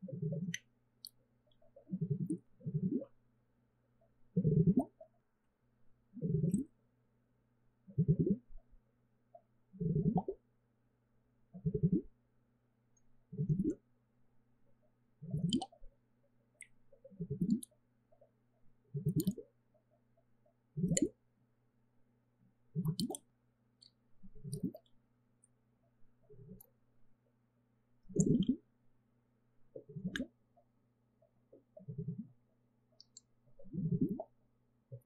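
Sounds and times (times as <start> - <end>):
water gurgling: 0.0 - 3.2, 4.3 - 5.1, 6.1 - 6.8, 9.8 - 10.4, 11.6 - 12.1, 13.3 - 13.8, 15.2 - 15.9, 16.6 - 18.3, 18.9 - 19.6, 20.7 - 21.2, 22.7 - 23.3, 24.2 - 24.9, 28.1 - 28.7, 29.7 - 35.0
faint steady hum: 0.0 - 35.0.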